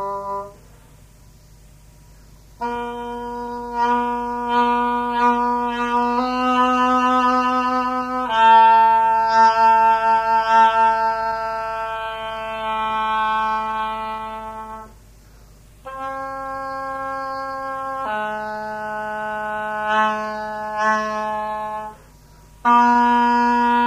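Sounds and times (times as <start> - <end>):
oboe: 0.0 - 0.6, 2.6 - 15.0, 15.8 - 22.0, 22.6 - 23.8.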